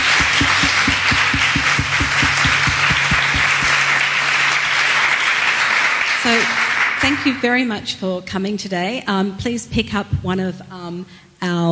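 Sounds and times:
regular low thumps: 0:00.0 - 0:04.2
audience applause: 0:00.0 - 0:07.5
speech: 0:06.3 - 0:11.7.

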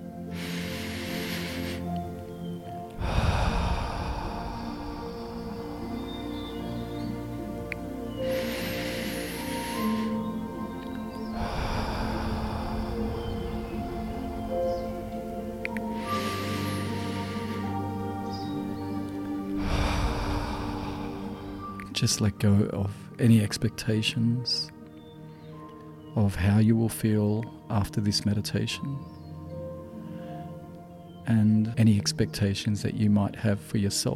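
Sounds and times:
deep breathing in through the nose and out through the mouth: 0:00.0 - 0:22.0
gentle sustained musical tones: 0:00.0 - 0:22.8
speech: 0:22.0 - 0:24.8, 0:26.2 - 0:29.2, 0:31.3 - 0:34.1.

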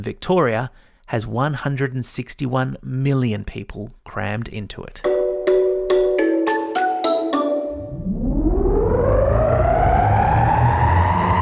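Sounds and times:
speech: 0:00.0 - 0:05.2
bright chime-like plucked notes: 0:05.0 - 0:08.0
loud whooshing sweep rising in pitch: 0:07.6 - 0:11.4.

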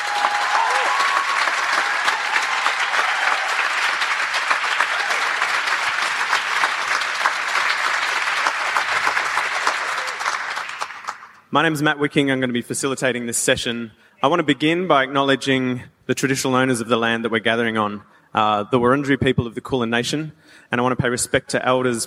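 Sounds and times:
audience applause: 0:00.0 - 0:11.4
speech: 0:11.6 - 0:22.0.

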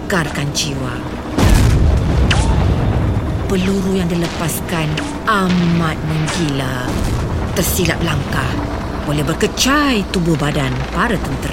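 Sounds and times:
speech: 0:00.1 - 0:01.2, 0:03.5 - 0:11.5
bomb explosion hitting the road: 0:01.4 - 0:08.6.

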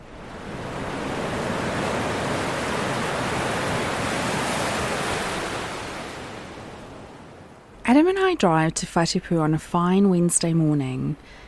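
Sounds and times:
ocean surf breaking on a beach: 0:00.0 - 0:08.6
speech: 0:07.9 - 0:11.4.

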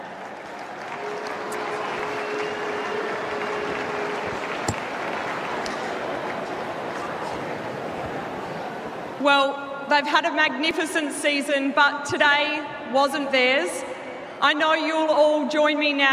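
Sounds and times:
audience applause: 0:00.0 - 0:09.2
speech: 0:09.2 - 0:13.8, 0:14.4 - 0:16.1.

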